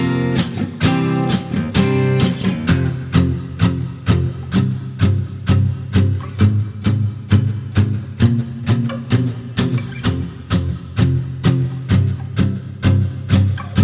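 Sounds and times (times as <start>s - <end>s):
backing track: 0.0s - 4.5s
guitar soloing: 0.0s - 13.8s.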